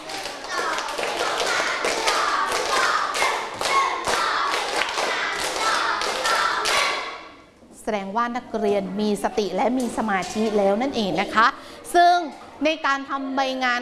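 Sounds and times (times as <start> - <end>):
children clapping in rhythm: 0.0 - 7.2
speech: 7.9 - 13.8.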